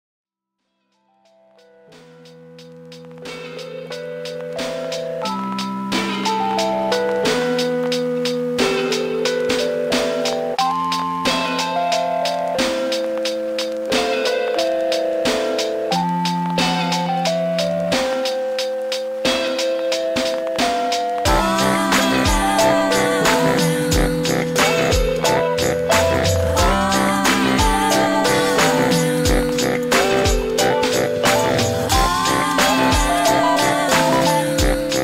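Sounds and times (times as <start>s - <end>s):
mindful funk music: 2.0s - 35.0s.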